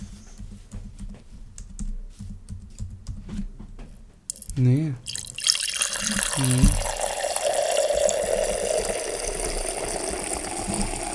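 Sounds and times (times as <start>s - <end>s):
beer pouring into a half-litre glass: 4.3s - 11.1s
speech: 4.6s - 5.1s, 6.4s - 6.9s.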